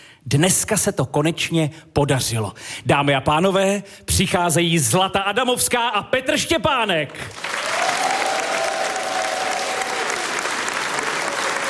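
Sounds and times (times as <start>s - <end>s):
speech: 0.2s - 7.6s
applause from a large audience in a historic hall: 7.3s - 11.6s.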